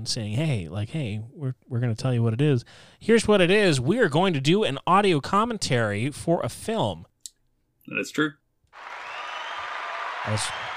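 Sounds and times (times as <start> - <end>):
speech: 0.0 - 7.1, 7.9 - 9.0, 10.2 - 10.7
applause sound effect from a button: 8.7 - 10.7.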